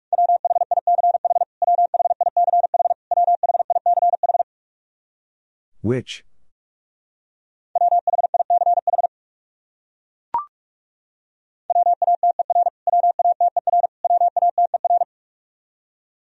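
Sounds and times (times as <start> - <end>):
Morse code keyed at 45 wpm: 0.1 - 4.4, 7.8 - 9.1, 11.7 - 15.1
speech: 5.8 - 6.3.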